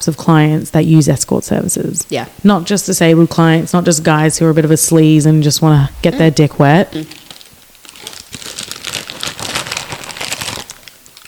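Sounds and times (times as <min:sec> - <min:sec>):
speech: 0:00.0 - 0:07.2
plastic snack packet crinkling: 0:07.0 - 0:11.2.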